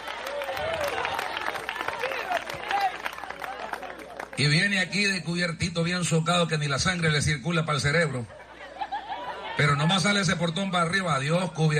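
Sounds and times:
audience clapping: 0:00.0 - 0:04.7
speech: 0:04.4 - 0:08.4, 0:09.6 - 0:11.7
laughter: 0:08.0 - 0:10.1.

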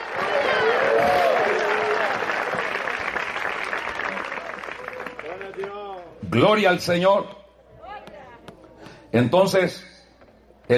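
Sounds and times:
audience applause: 0:00.0 - 0:06.2
speech: 0:06.4 - 0:07.4, 0:09.1 - 0:09.9.

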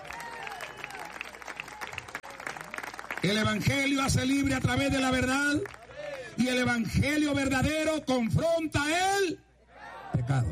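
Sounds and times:
audience applause: 0:00.0 - 0:04.0
speech: 0:03.2 - 0:05.8, 0:06.4 - 0:09.4, 0:10.1 - 0:10.5.

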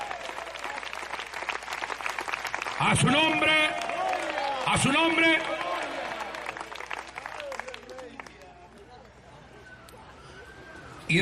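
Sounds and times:
audience applause: 0:00.0 - 0:08.6
speech: 0:02.8 - 0:03.9, 0:04.7 - 0:05.7.

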